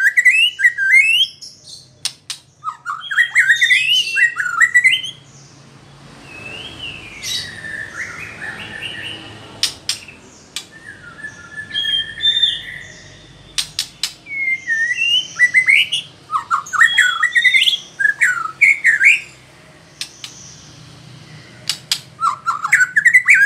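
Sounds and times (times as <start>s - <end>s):
White-rumped shama whistling song: 0.0s - 5.3s, 6.2s - 19.4s, 20.0s - 23.4s
sharp clicks: 2.0s - 2.5s, 9.6s - 10.8s, 13.5s - 14.3s, 20.0s - 20.5s, 21.6s - 22.2s.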